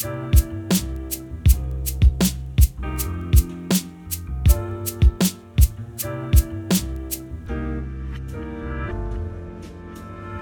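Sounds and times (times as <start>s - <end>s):
swag beat: 0.0s - 7.2s.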